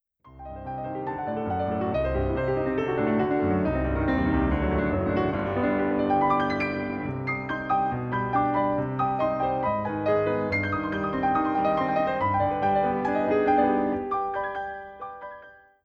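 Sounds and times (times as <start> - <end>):
grand piano: 0.2 - 15.8.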